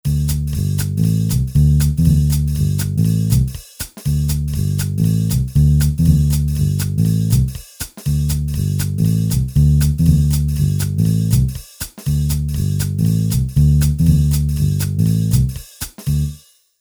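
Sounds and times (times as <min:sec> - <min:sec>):
jazz music: 0:00.1 - 0:16.4.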